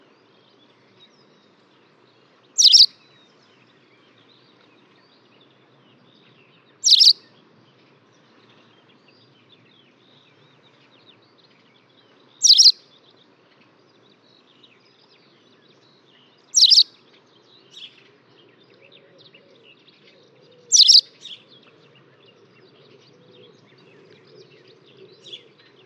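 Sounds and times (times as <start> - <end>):
White wagtail giving high scratchy chirps: 2.6 - 2.9, 6.8 - 7.2, 12.4 - 12.8, 16.6 - 16.9, 20.7 - 21.0.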